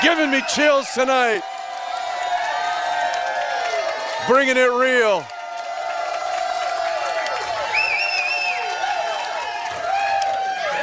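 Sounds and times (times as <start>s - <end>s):
speech: 0.0s - 1.6s, 4.2s - 5.3s
large crowd cheering at live show: 0.0s - 10.8s
whoops and whistles: 7.6s - 9.2s.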